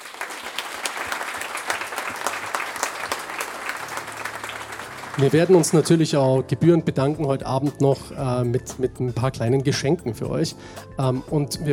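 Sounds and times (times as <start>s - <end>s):
audience applause: 0.0s - 6.1s
speech: 5.2s - 11.7s.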